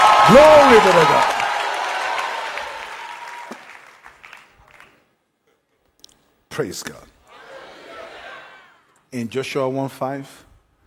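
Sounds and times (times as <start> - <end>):
crowd applauding: 0.0 - 5.1
speech: 0.3 - 1.4, 6.6 - 7.2, 9.1 - 10.5.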